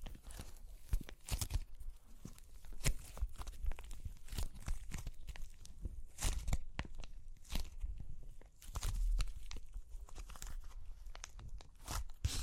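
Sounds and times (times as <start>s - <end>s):
dry clay cracking and crunching: 0.0s - 12.3s.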